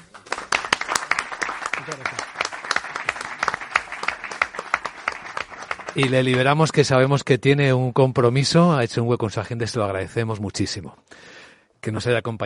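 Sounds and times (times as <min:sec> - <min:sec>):
audience applause: 0:00.0 - 0:06.8
speech: 0:01.9 - 0:02.3, 0:06.0 - 0:12.4.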